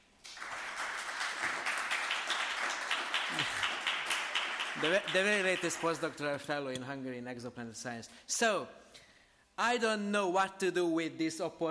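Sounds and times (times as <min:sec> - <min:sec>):
audience applause for a new postdoctoral fellow in exoplanet science: 0:00.2 - 0:06.2
speech: 0:04.8 - 0:08.8, 0:09.6 - 0:11.6.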